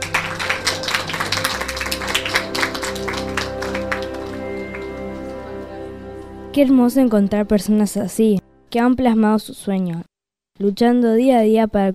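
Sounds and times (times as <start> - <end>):
crowd applauding for teachers: 0.0 - 6.2
low sustained musical drone: 0.0 - 8.8
speech: 6.6 - 11.9.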